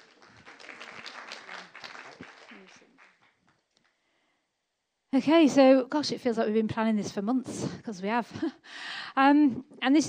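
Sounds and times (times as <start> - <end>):
audience applause: 0.0 - 3.4
speech: 5.1 - 10.0.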